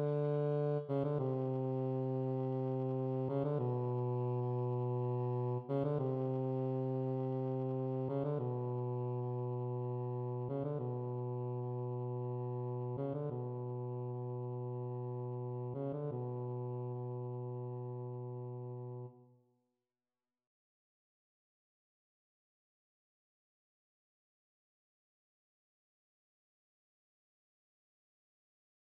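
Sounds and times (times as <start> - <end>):
tenor saxophone: 0.0 - 19.2.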